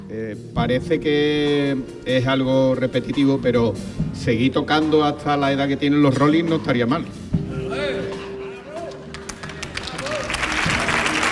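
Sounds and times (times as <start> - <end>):
speech: 0.1 - 7.2
audience ovation: 8.8 - 11.2.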